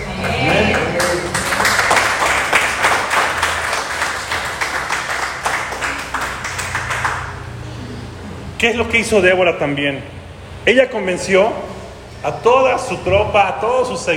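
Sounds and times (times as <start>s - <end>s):
crowd voices: 0.0s - 1.7s
audience applause: 0.0s - 7.6s
speech: 8.6s - 14.1s.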